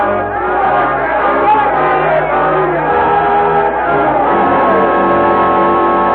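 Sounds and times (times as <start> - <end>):
large angry mob roaring and shouting: 0.0 - 6.0.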